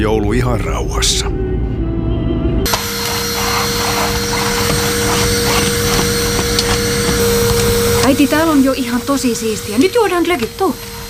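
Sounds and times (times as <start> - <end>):
speech: 0.3 - 1.8, 8.1 - 11.0
vacuum cleaner running: 2.7 - 11.0.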